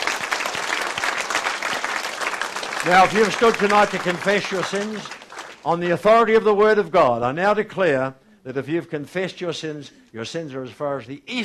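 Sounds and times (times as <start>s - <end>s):
church congregation applause as a clap offering: 0.0s - 6.3s
speech: 2.8s - 11.4s.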